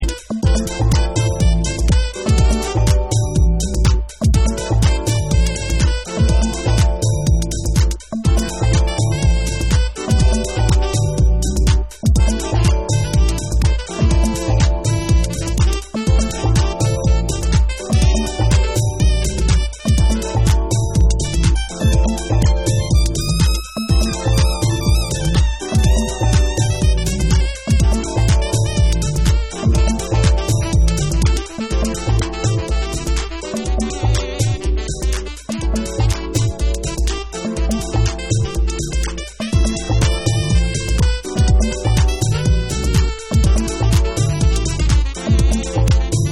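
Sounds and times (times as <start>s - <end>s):
saxophone: 0.0s - 46.3s.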